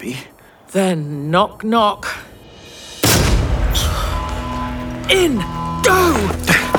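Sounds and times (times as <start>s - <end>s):
speech: 0.0s - 2.2s, 5.1s - 6.6s
breaching charge explosion: 2.5s - 5.1s.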